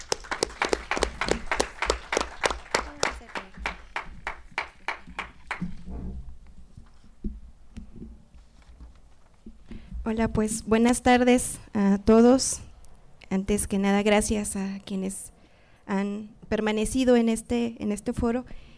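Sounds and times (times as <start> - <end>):
audience applause: 0.0 - 5.8
speech: 10.1 - 12.7, 13.3 - 15.3, 15.9 - 18.7.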